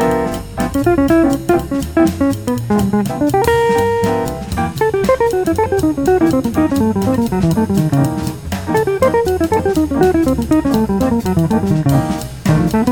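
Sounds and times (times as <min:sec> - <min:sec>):
fast guitar licks: 0:00.0 - 0:12.8.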